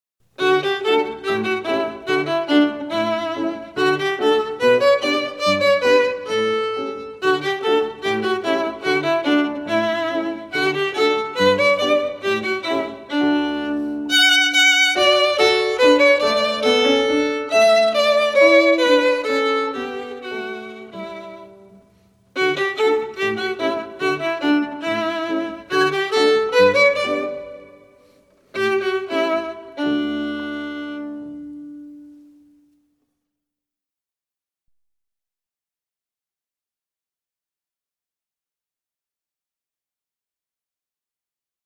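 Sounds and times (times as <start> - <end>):
violin andantino: 0.3 - 32.7.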